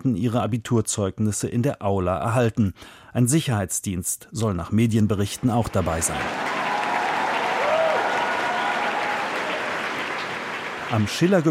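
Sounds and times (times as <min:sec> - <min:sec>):
speech: 0:00.0 - 0:06.6, 0:10.9 - 0:11.4
applause in a school auditorium: 0:05.4 - 0:11.4.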